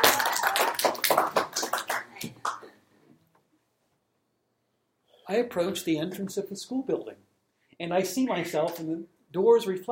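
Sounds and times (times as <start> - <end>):
audience applause: 0.0 - 2.6
speech: 5.3 - 9.9.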